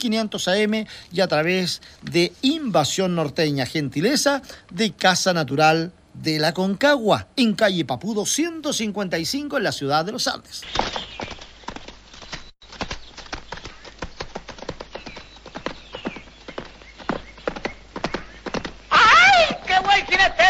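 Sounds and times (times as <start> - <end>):
speech: 0.0 - 11.3
horse hooves clip-clopping: 10.6 - 20.4.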